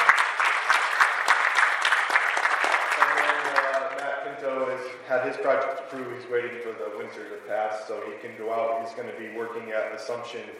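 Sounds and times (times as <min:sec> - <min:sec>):
audience applause: 0:00.0 - 0:04.8
speech: 0:05.1 - 0:10.5.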